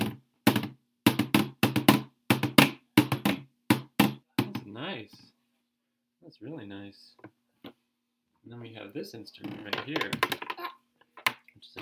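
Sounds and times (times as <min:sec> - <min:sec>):
drums struck with sticks: 0:00.0 - 0:04.7
speech: 0:04.8 - 0:05.4, 0:06.2 - 0:07.8, 0:08.5 - 0:10.6.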